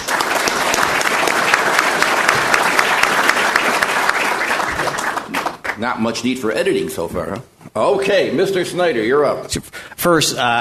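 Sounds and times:
audience applause: 0.0s - 5.9s
speech: 5.8s - 10.5s.

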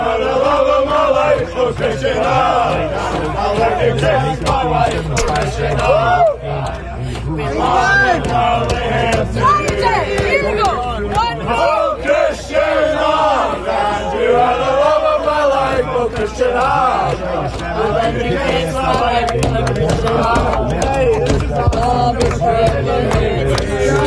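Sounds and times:
crowd of football fans singing: 0.0s - 24.0s
banging: 5.2s - 6.0s.

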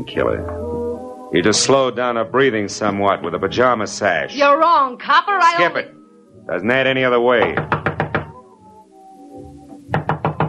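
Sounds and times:
speech: 0.0s - 0.6s, 1.3s - 7.8s
knocking on a door: 7.4s - 8.4s, 9.9s - 10.4s.

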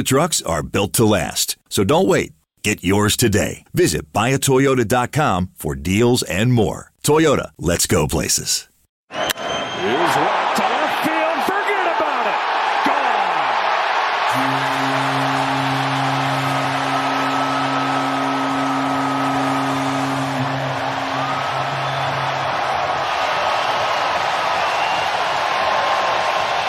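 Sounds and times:
speech: 0.0s - 9.4s
stadium crowd cheering home run: 9.1s - 26.6s.

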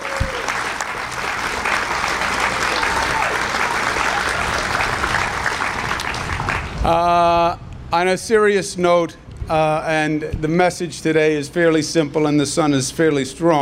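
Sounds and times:
round of applause: 0.0s - 6.8s
speech: 6.8s - 13.6s.

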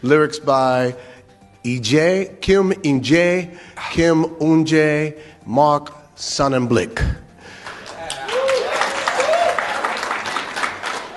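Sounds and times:
speech: 0.0s - 7.2s
polite applause from a small crowd: 7.6s - 11.1s.

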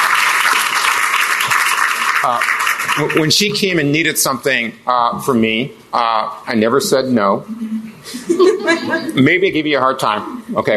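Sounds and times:
applause: 0.0s - 3.5s
speech: 2.2s - 10.7s
laughter: 7.5s - 9.4s.

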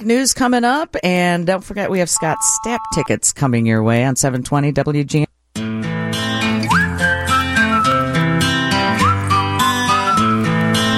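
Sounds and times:
speech: 0.0s - 5.3s
whistled melody in a pop song: 6.6s - 10.9s.

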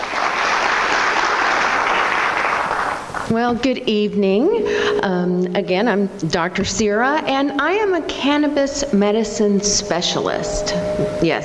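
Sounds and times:
audience applause: 0.0s - 3.3s
speech: 3.3s - 11.4s.

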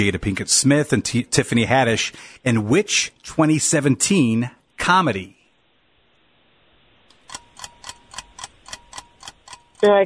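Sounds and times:
speech: 0.0s - 5.4s, 9.8s - 10.0s
quiz timer ticking: 7.1s - 10.0s.

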